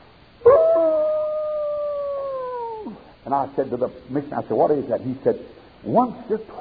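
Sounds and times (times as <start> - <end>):
wolves howling: 0.4 - 3.0
speech: 3.3 - 6.6.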